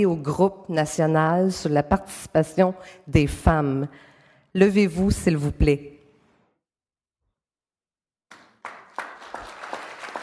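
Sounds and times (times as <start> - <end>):
speech: 0.0 - 5.9
audience applause: 8.3 - 10.2.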